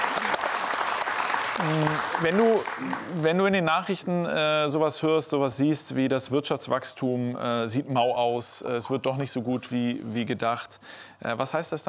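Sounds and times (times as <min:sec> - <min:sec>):
applause: 0:00.0 - 0:03.6
speech: 0:01.6 - 0:11.8.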